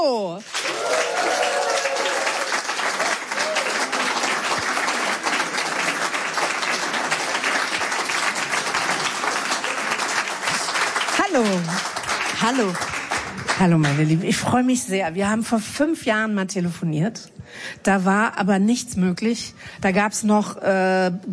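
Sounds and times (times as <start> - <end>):
audience applause: 0.4 - 14.2
speech: 11.4 - 13.0, 13.6 - 21.3.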